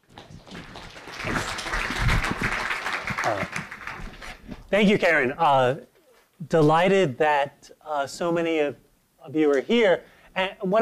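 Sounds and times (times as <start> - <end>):
audience applause welcoming a speaker at a talk: 0.0 - 4.5
speech: 3.3 - 3.6, 4.7 - 10.7.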